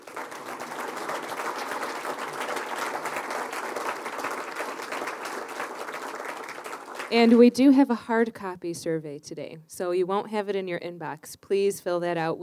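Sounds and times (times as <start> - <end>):
audience applause: 0.0 - 7.4
speech: 7.1 - 12.4.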